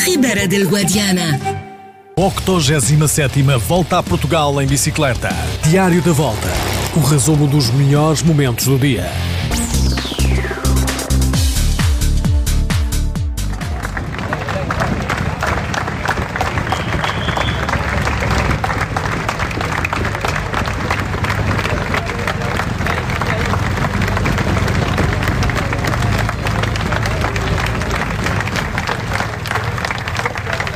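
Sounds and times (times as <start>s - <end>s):
speech: 0.1s - 1.6s, 2.2s - 9.7s
large crowd applauding and cheering at a race finish: 2.2s - 12.1s, 12.7s - 30.7s.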